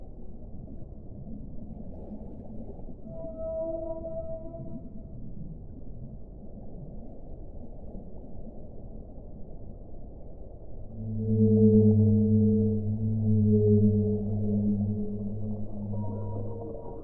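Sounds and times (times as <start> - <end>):
whale calls: 3.0 - 5.0, 10.8 - 17.0.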